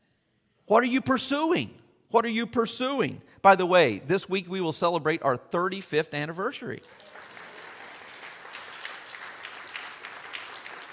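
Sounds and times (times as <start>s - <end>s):
speech: 0.7s - 7.1s
audience clapping: 6.8s - 10.9s.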